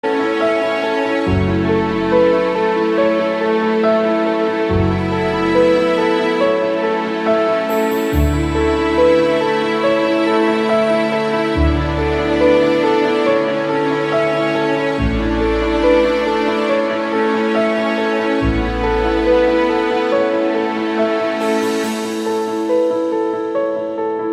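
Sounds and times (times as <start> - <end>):
gentle touching ringtone music: 0.1 - 24.2.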